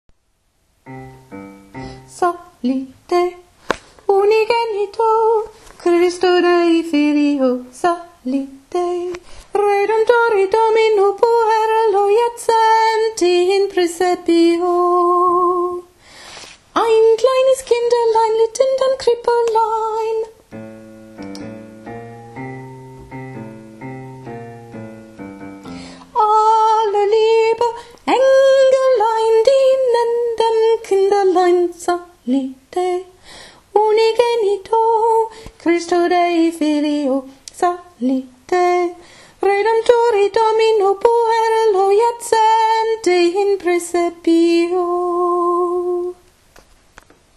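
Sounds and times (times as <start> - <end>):
soprano singing: 0.8 - 16.0, 16.8 - 46.3.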